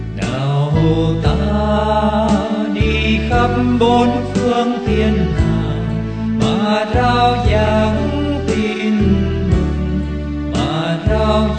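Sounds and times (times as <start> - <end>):
soprano singing: 0.2 - 11.5.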